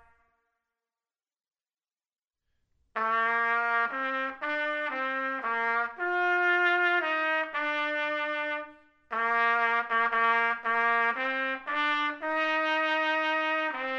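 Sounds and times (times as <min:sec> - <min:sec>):
trumpet: 0:03.0 - 0:13.9.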